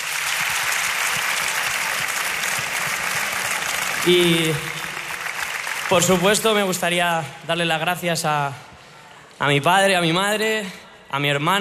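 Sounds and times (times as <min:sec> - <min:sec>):
audience applause: 0:00.0 - 0:07.0
speech: 0:04.0 - 0:04.7, 0:05.9 - 0:08.7, 0:09.4 - 0:11.5.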